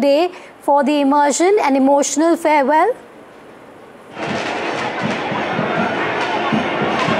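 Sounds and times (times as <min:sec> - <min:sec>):
speech: 0:00.0 - 0:03.1
massive festival crowds in Mumbai at Ganpati immersion: 0:04.1 - 0:07.1.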